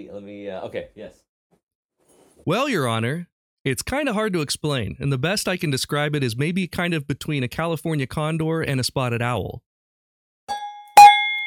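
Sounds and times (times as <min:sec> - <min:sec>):
speech: 0:00.0 - 0:01.3, 0:02.4 - 0:09.7
cowbell struck: 0:10.5 - 0:11.4.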